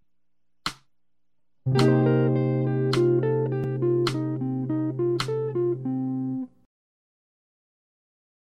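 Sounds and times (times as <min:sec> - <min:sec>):
jazz music: 0:01.7 - 0:06.5.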